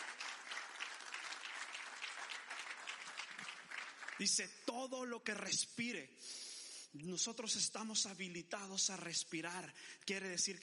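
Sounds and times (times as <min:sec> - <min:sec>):
audience applause: 0:00.0 - 0:04.4
speech: 0:04.2 - 0:10.6.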